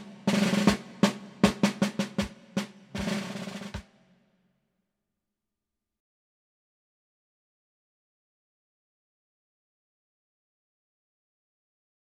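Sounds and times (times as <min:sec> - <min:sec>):
drum roll: 0:00.0 - 0:04.0.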